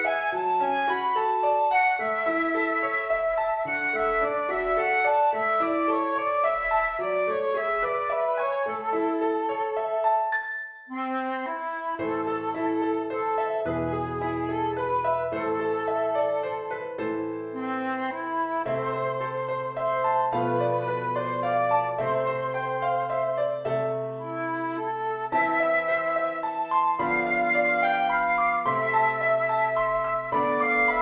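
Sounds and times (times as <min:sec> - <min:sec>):
flute and piano minuet: 0:00.0 - 0:31.0.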